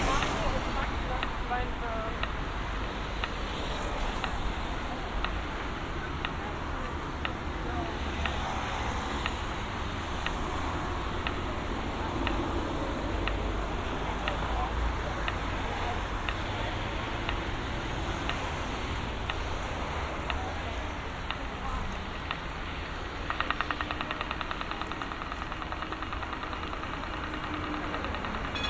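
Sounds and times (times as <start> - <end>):
passing vehicles: 0.0 - 28.6
sharp ticks: 0.0 - 28.6
street noise in Amsterdam: 0.0 - 28.6.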